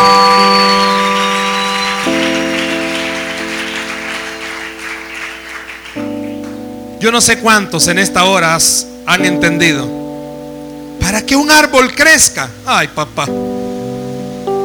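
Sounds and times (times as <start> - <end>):
audience applause: 0.0 - 6.6
speech: 7.0 - 10.0, 11.0 - 13.5.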